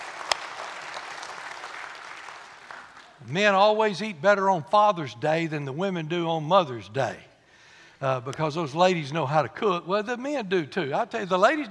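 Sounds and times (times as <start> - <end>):
audience hand clapping: 0.0 - 3.3
speech: 3.3 - 7.3, 8.0 - 11.6.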